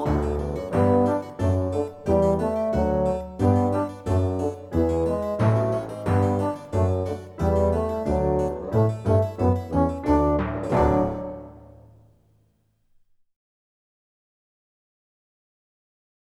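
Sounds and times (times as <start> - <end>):
song by rhythm ensemble: 0.1 - 11.8.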